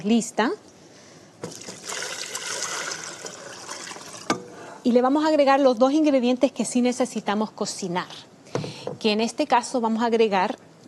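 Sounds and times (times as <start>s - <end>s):
speech: 0.0s - 0.7s, 1.4s - 1.7s, 4.8s - 8.3s, 9.0s - 10.7s
water pouring into a cooking pot: 1.4s - 4.4s.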